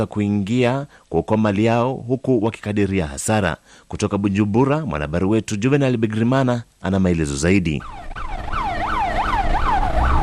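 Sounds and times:
speech: 0.0 - 8.3
fire engine siren at Kamenge market in Bujumbura: 7.8 - 10.2.

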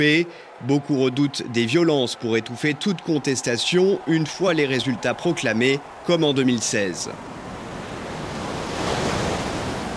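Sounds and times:
speech: 0.0 - 7.5
sea waves on the seafront near the Gabonese presidency: 2.7 - 9.9.

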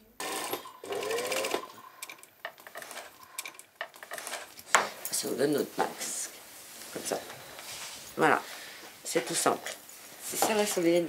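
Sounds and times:
sewing machines making masks in closed shops in Lisieux, Normandy: 0.2 - 4.6
speech: 5.2 - 6.2, 7.0 - 7.4, 8.2 - 8.5, 9.2 - 11.0.

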